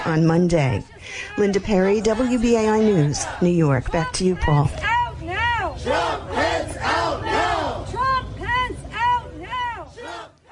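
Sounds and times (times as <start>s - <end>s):
speech: 0.0s - 4.9s, 5.8s - 7.0s
protesters shouting outside the Capitol: 0.0s - 10.4s.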